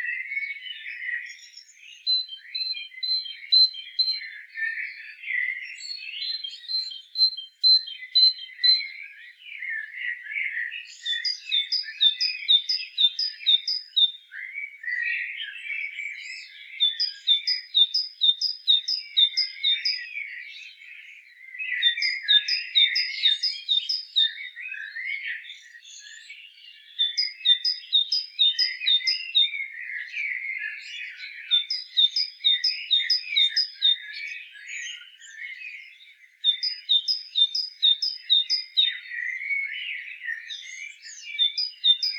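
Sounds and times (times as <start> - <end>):
other small birds twittering: 0.0 - 42.1.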